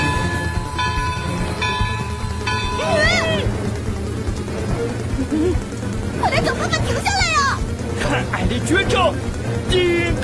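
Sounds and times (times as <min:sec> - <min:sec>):
train approaching: 0:00.0 - 0:10.2.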